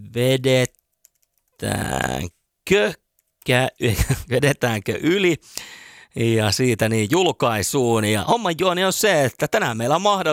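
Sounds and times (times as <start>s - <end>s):
speech: 0.1s - 0.8s, 1.6s - 10.3s
typing a Facebook post on a computer keyboard: 0.8s - 1.5s.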